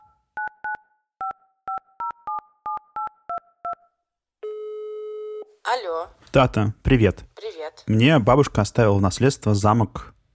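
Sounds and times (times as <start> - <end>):
phone ringing tone: 0.0 - 5.6
speech: 5.7 - 10.1.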